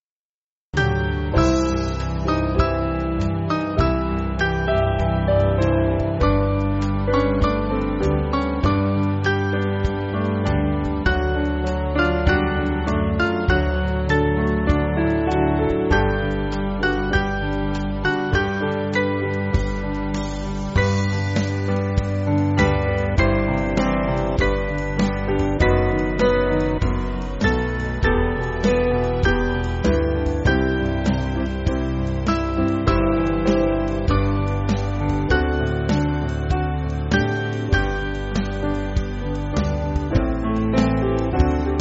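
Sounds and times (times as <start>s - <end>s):
band backing track for churches: 0.8s - 41.7s.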